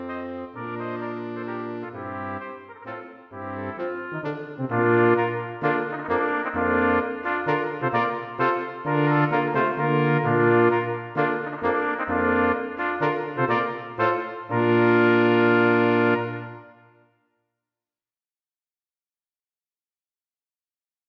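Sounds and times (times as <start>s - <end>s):
brass quartet with baritone and tuba playing a minuet: 0.0s - 16.8s.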